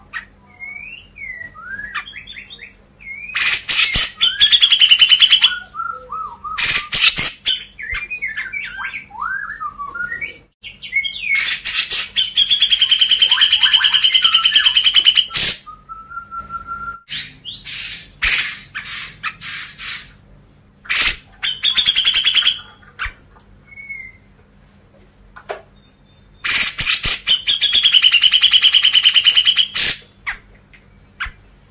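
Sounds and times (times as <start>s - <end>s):
grey-cheeked bulbul song: 0.0s - 31.6s.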